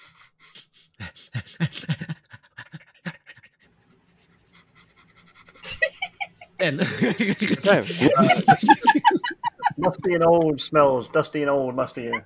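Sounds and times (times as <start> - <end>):
hissing breath: 0.0 - 1.9, 3.9 - 5.8
person sniffing the air: 0.0 - 1.9, 4.0 - 5.8
laughter: 1.0 - 4.5, 5.5 - 11.0, 11.8 - 12.2
speech: 6.6 - 12.2.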